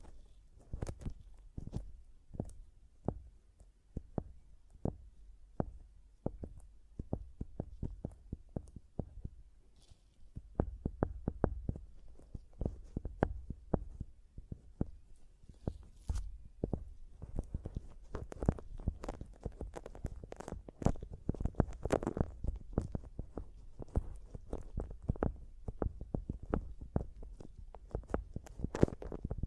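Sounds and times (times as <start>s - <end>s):
microphone tapping knocks: 0.0s - 29.4s.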